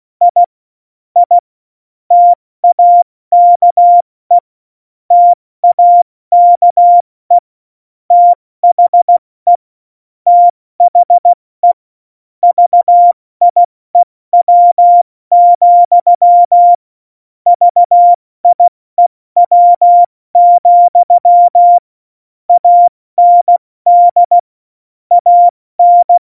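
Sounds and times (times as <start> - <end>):
CW Morse code at tempo 70: 0.3 - 0.5, 1.2 - 1.4, 2.1 - 4.4, 5.1 - 7.4, 8.1 - 9.6, 10.3 - 11.8, 12.4 - 13.7, 14.4 - 16.8, 17.5 - 18.7, 19.4 - 21.8, 22.5 - 24.4, 25.1 - 26.2.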